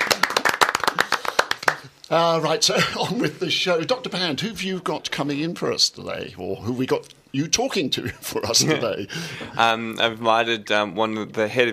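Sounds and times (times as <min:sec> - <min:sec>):
round of applause: 0:00.0 - 0:01.9
speech: 0:02.1 - 0:11.7.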